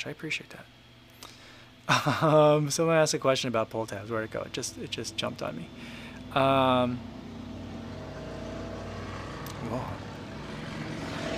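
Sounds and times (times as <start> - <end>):
speech: 0.0 - 0.8, 1.9 - 7.2, 9.6 - 10.0
motorcycles passing by: 4.2 - 11.3.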